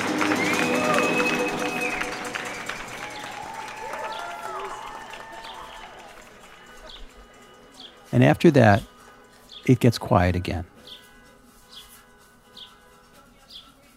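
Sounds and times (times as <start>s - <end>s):
whistle-like tones: 0.0s - 7.2s
city crowd clapping and shouting: 0.0s - 8.1s
speech: 8.2s - 8.9s, 9.6s - 11.0s.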